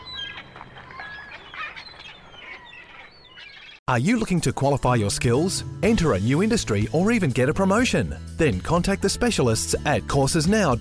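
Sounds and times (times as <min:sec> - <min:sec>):
parrot squawking and chirping: 0:00.0 - 0:03.8
speech: 0:03.9 - 0:10.7.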